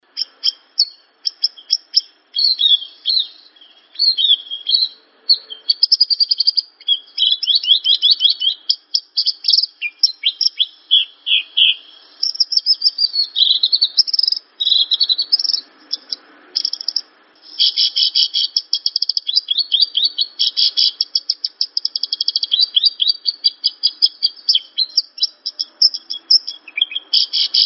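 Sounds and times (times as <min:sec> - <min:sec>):
bird singing: 0:00.0 - 0:27.6.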